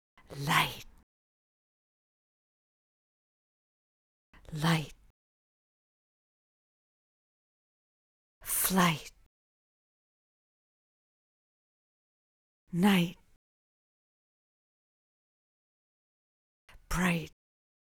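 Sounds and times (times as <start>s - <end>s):
vocal stems: 0.2s - 1.0s, 4.4s - 5.0s, 8.5s - 9.2s, 12.8s - 13.3s, 16.7s - 17.4s.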